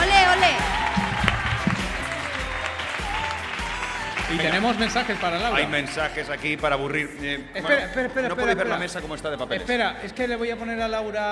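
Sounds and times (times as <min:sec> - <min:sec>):
audience applause: 0:00.0 - 0:06.6
speech: 0:04.3 - 0:11.2.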